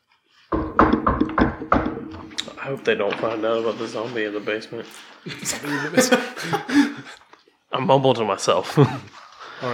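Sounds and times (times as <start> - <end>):
firm knocks on a wooden door: 0.5 - 2.3
speech: 2.6 - 9.7
laughter: 5.2 - 7.2, 8.6 - 9.2.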